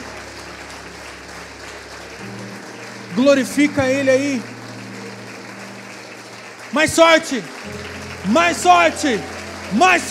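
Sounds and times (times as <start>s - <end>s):
crowd applause: 0.0s - 10.0s
speech: 3.2s - 4.5s, 6.7s - 10.0s.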